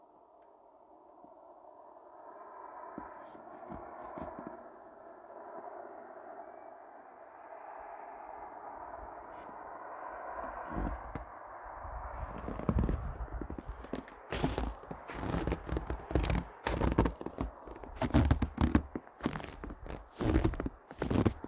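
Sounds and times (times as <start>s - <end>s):
midrange rush: 0.7s - 21.4s
footsteps crunching in snow in Sweden in winter: 3.0s - 4.7s, 10.4s - 11.2s, 12.2s - 21.4s.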